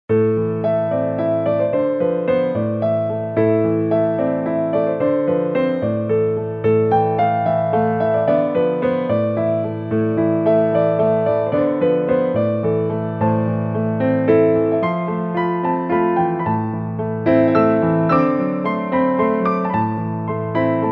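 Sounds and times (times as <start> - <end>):
piano: 0.1 - 20.8.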